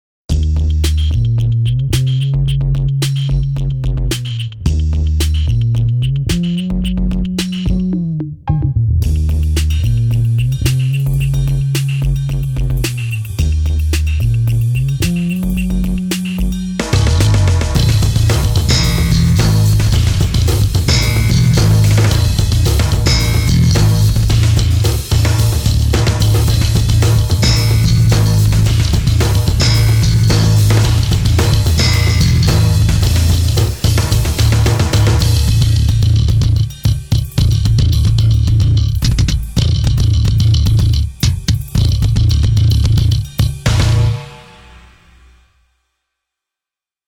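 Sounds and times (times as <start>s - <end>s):
bass: 0.3s - 45.0s.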